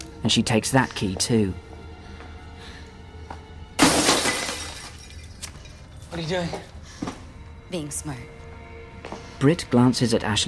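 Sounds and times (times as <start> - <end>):
speech: 0.2 - 1.7, 6.2 - 6.8, 7.7 - 8.4, 9.4 - 10.4
box smashed with a shoe: 3.8 - 5.1.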